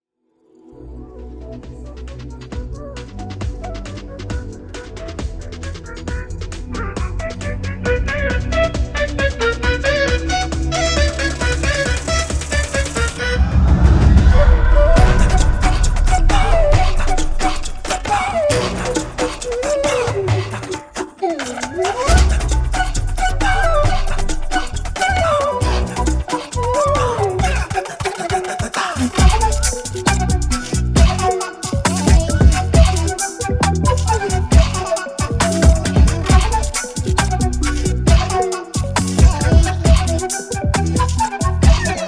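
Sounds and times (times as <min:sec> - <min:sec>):
interval background music: 0:00.4 - 0:42.0.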